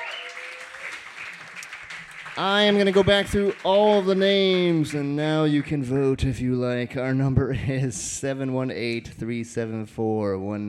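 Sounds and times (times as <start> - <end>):
audience clapping: 0.0 - 6.4
speech: 2.4 - 10.6.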